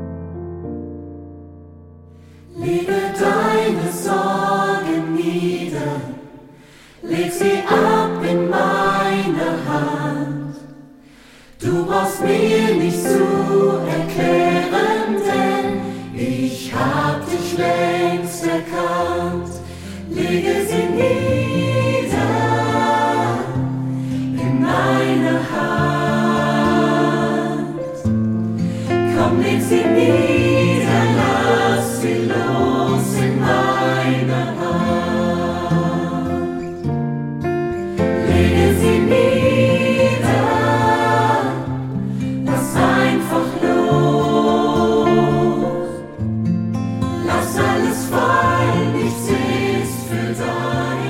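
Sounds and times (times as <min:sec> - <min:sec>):
studio choir singing: 0:02.5 - 0:37.0, 0:37.7 - 0:46.2, 0:47.0 - 0:51.0.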